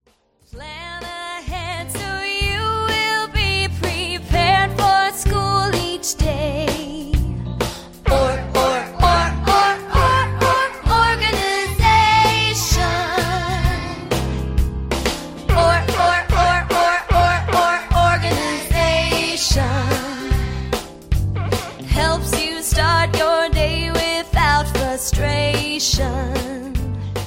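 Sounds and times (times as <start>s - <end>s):
demo album track music: 0.0s - 27.2s
singing vocals: 8.0s - 14.0s, 15.5s - 20.7s.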